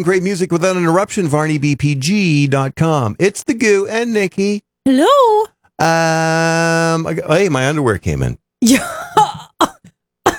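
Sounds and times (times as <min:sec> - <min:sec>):
speech: 0:00.0 - 0:09.7
person coughing after choking on spit: 0:09.2 - 0:10.3.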